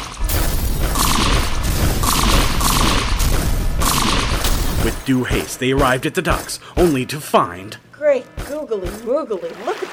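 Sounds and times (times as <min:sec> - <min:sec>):
gunfire blasting through a base: 0:00.2 - 0:05.6
speech: 0:05.1 - 0:09.9.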